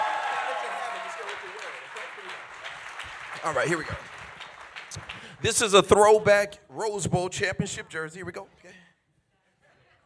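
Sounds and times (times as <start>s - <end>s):
audience hand clapping: 0.0s - 6.2s
speech: 3.4s - 4.1s, 5.4s - 8.8s.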